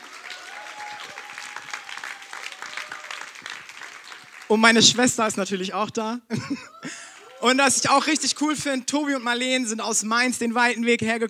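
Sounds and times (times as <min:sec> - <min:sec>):
audience applause: 0:00.0 - 0:05.2, 0:06.7 - 0:08.4
speech: 0:04.5 - 0:11.2
laughter: 0:06.3 - 0:08.3.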